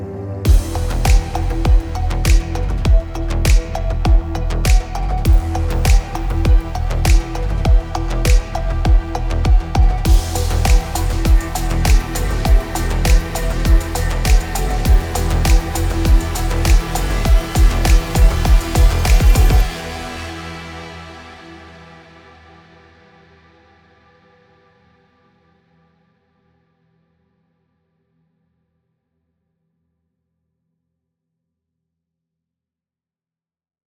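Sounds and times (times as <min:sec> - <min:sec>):
electronic music: 0:00.0 - 0:21.6.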